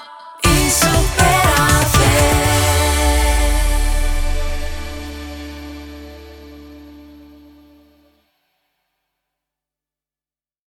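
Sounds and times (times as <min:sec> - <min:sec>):
sung jingle at 120 bpm in D major: 0:00.5 - 0:08.1.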